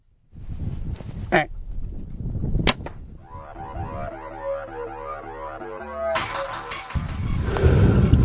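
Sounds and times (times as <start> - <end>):
outdoor rustle and wind: 0.0 - 3.2
bow shot: 2.6 - 3.0
lower droning, rumbling noise: 3.2 - 8.2.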